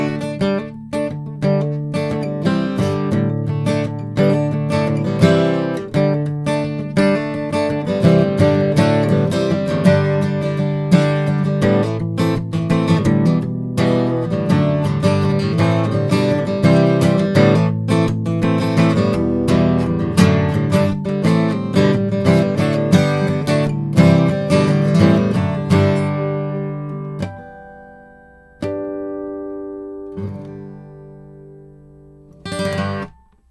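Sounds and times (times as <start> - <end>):
Santa Cruz OM acoustic guitar improvisation in E minor: 0.0 - 33.5.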